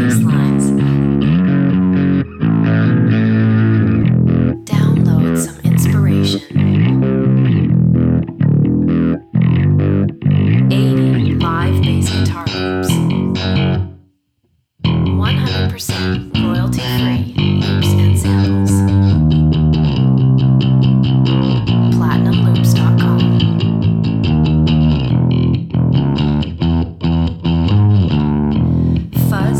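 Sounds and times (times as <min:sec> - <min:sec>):
fuzz bass loops: 0:00.0 - 0:13.9, 0:14.8 - 0:29.5.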